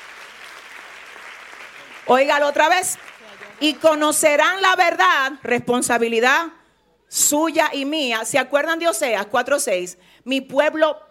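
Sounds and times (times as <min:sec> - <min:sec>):
audience applauding: 0:00.0 - 0:04.2
speech: 0:02.1 - 0:11.0.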